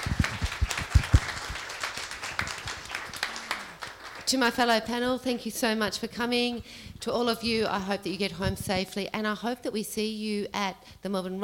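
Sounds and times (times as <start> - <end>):
audience applause: 0.0 - 4.4
speech: 4.3 - 11.4.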